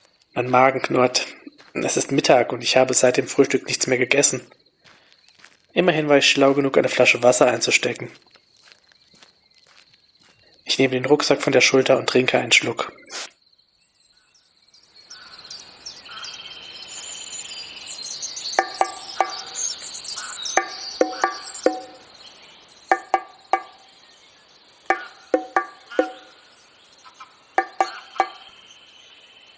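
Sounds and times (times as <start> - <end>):
birds in a forest: 0.0 - 29.5
insects in a forest: 0.0 - 29.5
speech: 0.4 - 4.6, 5.8 - 8.4, 10.8 - 13.3.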